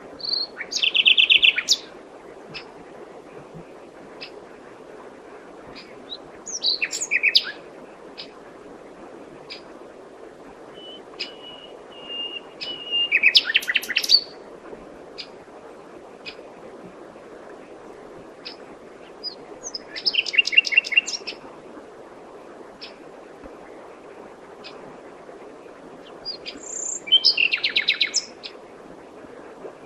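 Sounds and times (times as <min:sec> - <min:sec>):
common nightingale Luscinia megarhynchos singing: 0:00.2 - 0:01.9, 0:10.8 - 0:14.3, 0:19.7 - 0:21.3, 0:26.3 - 0:28.3.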